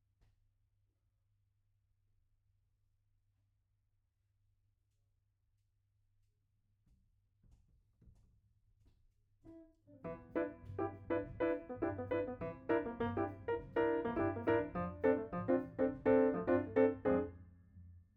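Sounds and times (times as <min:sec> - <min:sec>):
piano note B: 0:10.0 - 0:17.4.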